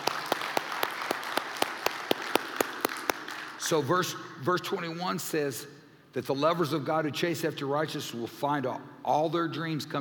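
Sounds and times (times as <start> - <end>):
audience clapping: 0.0 - 3.7
speech: 3.7 - 9.9.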